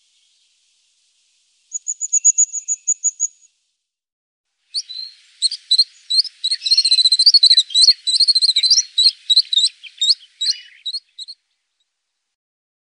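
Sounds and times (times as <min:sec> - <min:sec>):
crested tit making high thin notes and buzzy trills: 0:01.7 - 0:03.5, 0:04.7 - 0:11.4.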